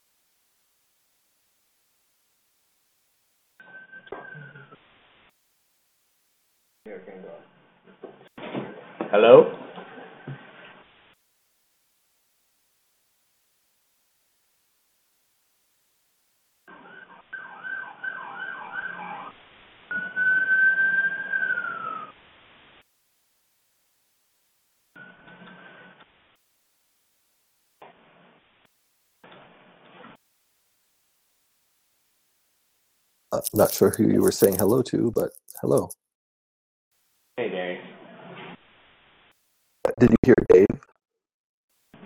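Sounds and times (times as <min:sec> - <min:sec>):
crackly phone line static: 0:00.0 - 0:09.0, 0:09.6 - 0:17.6, 0:18.7 - 0:36.0, 0:38.6 - 0:40.8
speech: 0:06.9 - 0:08.5, 0:09.1 - 0:09.6, 0:33.4 - 0:36.1, 0:40.0 - 0:40.6
ambulance siren going by: 0:16.7 - 0:19.3.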